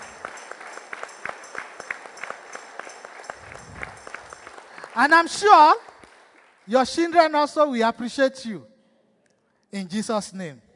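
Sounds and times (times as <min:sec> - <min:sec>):
crowd clapping in rhythm: 0:00.0 - 0:07.4
speech: 0:05.0 - 0:05.8, 0:06.7 - 0:08.7, 0:09.7 - 0:10.6.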